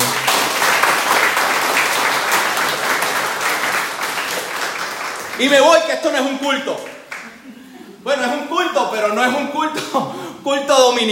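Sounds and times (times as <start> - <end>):
audience applause: 0.0 - 5.7
speech: 5.4 - 6.9, 8.0 - 11.0
laughter: 7.2 - 8.1.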